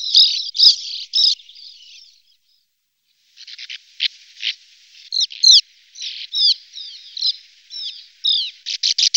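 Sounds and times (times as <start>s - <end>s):
sand martin twittering: 0.0s - 2.2s, 3.3s - 9.1s.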